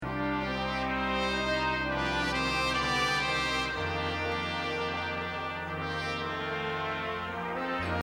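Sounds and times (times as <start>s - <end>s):
bass: 0.0s - 8.0s.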